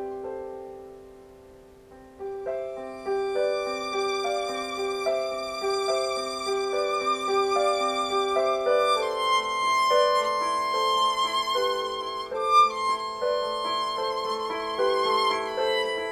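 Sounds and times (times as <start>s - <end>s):
piano improvisation: 0.0s - 16.0s
violin improvisation: 2.9s - 16.0s.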